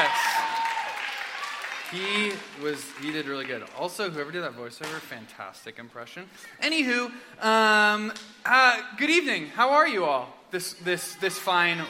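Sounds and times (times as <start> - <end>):
round of applause from a crowd: 0.0 - 3.9
speech: 1.9 - 11.8.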